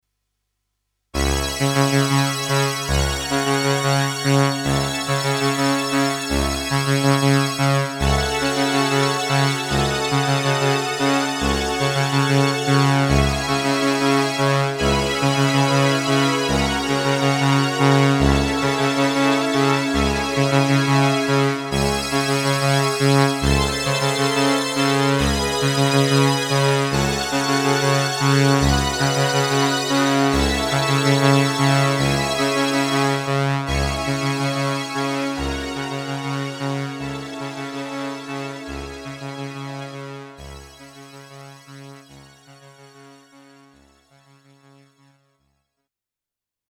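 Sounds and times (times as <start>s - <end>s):
cello bass: 1.2s - 40.3s
orchestral tutti: 13.1s - 39.5s.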